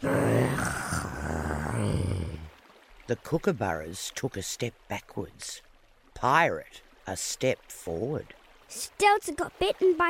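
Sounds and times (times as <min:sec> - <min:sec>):
person imitating a dog growl: 0:00.0 - 0:02.5
speech: 0:03.1 - 0:10.0.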